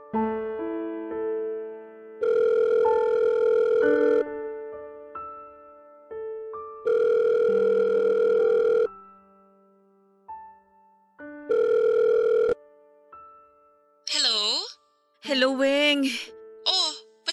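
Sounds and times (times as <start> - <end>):
soft steady melodic music: 0.0 - 17.3
telephone ringing on an outgoing call: 2.2 - 4.2, 6.8 - 8.9, 11.5 - 12.6.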